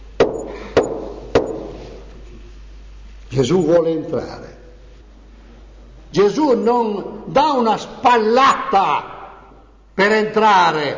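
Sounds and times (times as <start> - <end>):
knocking on a door: 0.2 - 1.8
speech: 3.3 - 4.6, 6.1 - 9.1, 10.0 - 10.9.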